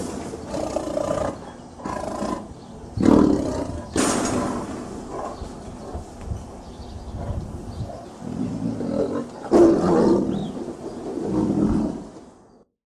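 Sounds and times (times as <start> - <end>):
tiger roaring: 0.3 - 6.0, 7.9 - 12.2.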